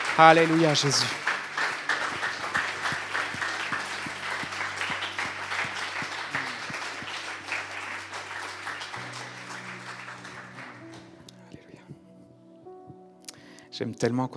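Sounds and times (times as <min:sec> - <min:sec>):
audience applauding: 0:00.0 - 0:11.4
speech: 0:00.2 - 0:01.2, 0:13.8 - 0:14.3.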